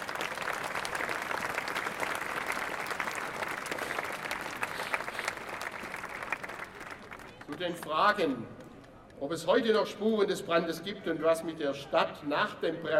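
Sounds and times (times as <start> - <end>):
audience applause: 0.0 - 7.8
speech: 7.6 - 8.6, 9.2 - 12.9.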